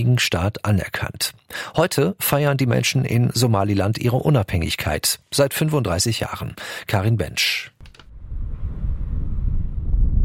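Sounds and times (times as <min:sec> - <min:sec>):
speech: 0:00.0 - 0:07.7
wind buffeting the microphone in Somaliland: 0:08.1 - 0:10.2.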